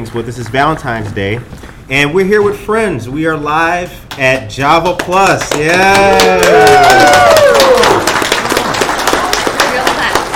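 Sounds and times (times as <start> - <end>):
speech: 0.0 - 8.1
live audience clapping: 4.1 - 10.3.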